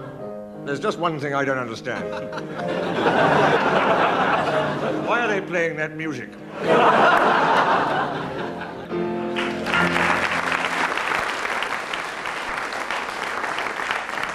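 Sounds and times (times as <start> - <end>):
speech: 0.7 - 8.3
laughter: 1.9 - 5.4, 6.5 - 10.1
audience applause: 6.9 - 8.2, 9.3 - 14.3.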